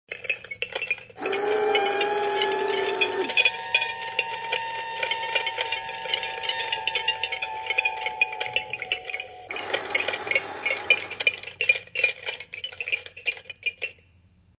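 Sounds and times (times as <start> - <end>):
bones clanking: 0.1 - 14.0
screams: 1.2 - 7.7.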